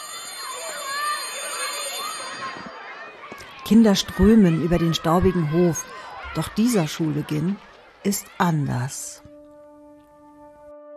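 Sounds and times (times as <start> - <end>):
school bell ringing: 0.0 - 8.4
speech: 3.7 - 9.2.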